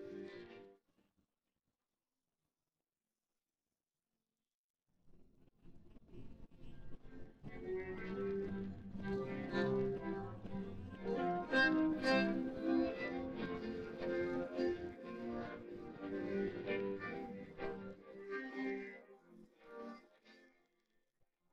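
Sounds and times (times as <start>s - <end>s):
guitar: 0.0s - 0.7s, 6.7s - 20.6s.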